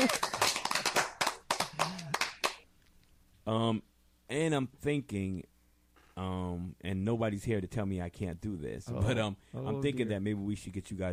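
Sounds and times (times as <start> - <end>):
applause: 0.0 - 2.6
speech: 3.5 - 5.5, 6.2 - 11.1.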